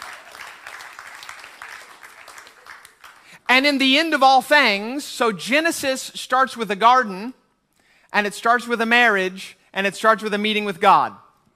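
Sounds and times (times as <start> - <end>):
audience applauding: 0.0 - 3.5
speech: 3.5 - 7.4, 8.1 - 11.2.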